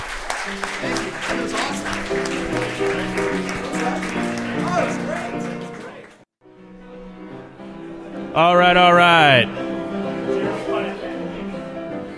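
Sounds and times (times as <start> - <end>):
audience applause: 0.0 - 6.2, 8.4 - 9.5
speech: 0.5 - 1.8, 8.4 - 9.6.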